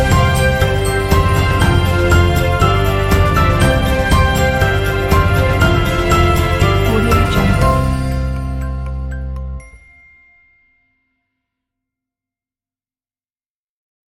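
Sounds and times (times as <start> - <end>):
instrumental Christmas music: 0.0 - 11.2.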